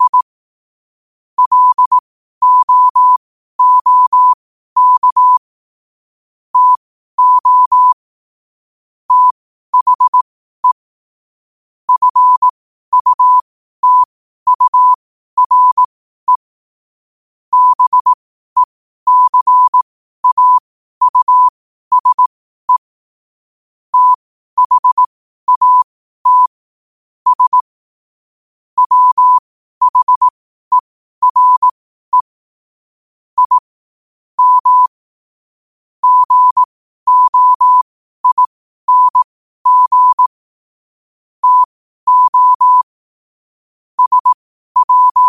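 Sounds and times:
morse code at 5 wpm: 0.0 - 0.3, 1.4 - 5.4, 6.6 - 8.0, 9.1 - 10.8, 11.9 - 16.4, 17.5 - 22.9, 23.9 - 26.6, 27.3 - 27.7, 28.8 - 32.4, 33.4 - 33.7, 34.4 - 35.0, 36.0 - 40.4, 41.4 - 43.0, 44.0 - 45.2.

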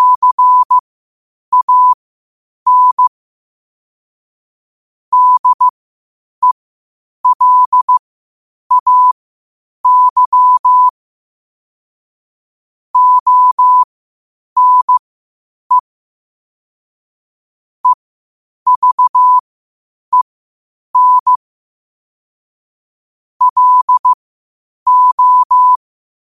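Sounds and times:
morse code at 5 wpm: 0.0 - 0.8, 1.5 - 2.0, 2.7 - 3.1, 5.1 - 5.7, 7.2 - 8.0, 8.7 - 9.2, 9.8 - 10.9, 13.0 - 13.9, 14.6 - 15.0, 18.7 - 19.4, 21.0 - 21.4, 23.4 - 24.2, 24.9 - 25.8.

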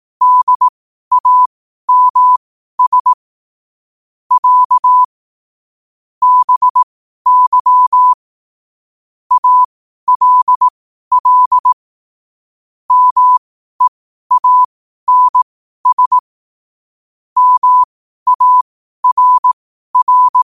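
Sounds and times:
morse code at 5 wpm: 0.2 - 3.1, 4.3 - 5.1, 6.2 - 8.2, 9.3 - 11.8, 12.9 - 16.2, 17.4 - 20.4.

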